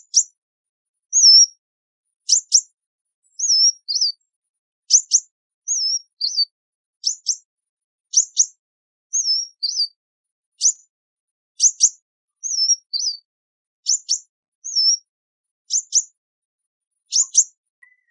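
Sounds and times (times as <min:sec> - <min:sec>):
sunbird chips and whistles: 0:01.2 - 0:01.6, 0:03.4 - 0:04.2, 0:04.9 - 0:07.4, 0:08.1 - 0:08.6, 0:09.2 - 0:10.0, 0:10.6 - 0:10.9, 0:11.6 - 0:13.2, 0:13.9 - 0:15.1, 0:17.1 - 0:18.0.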